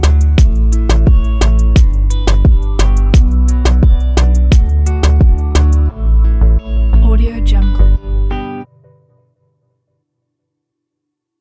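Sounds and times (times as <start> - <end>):
nostalgic modern reggaeton instrumental: 0.0 - 8.6.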